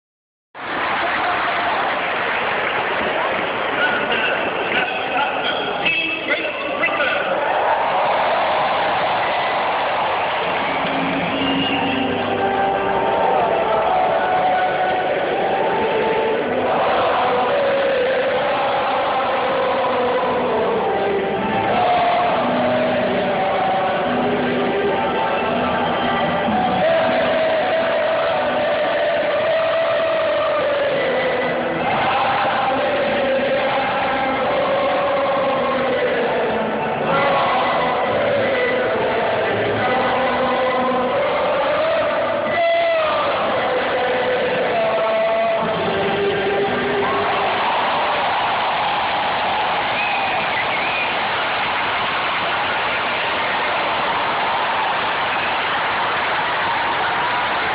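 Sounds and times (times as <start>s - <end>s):
national anthem in Hyde Park: 0.7s - 57.7s.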